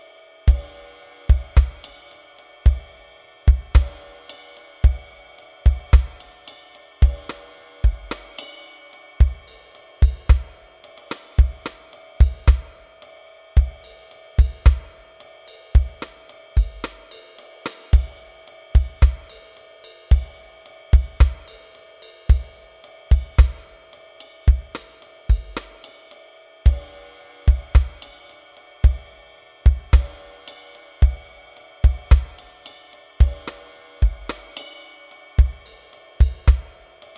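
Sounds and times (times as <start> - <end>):
jazz rock drums: 0.5 - 12.9, 13.6 - 26.0, 26.7 - 37.1.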